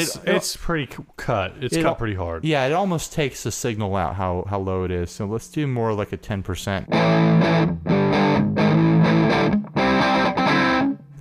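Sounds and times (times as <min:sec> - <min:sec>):
speech: 0:00.0 - 0:07.9
electric guitar chords through a Muff-style fuzz pedal on a light setting: 0:06.9 - 0:11.1.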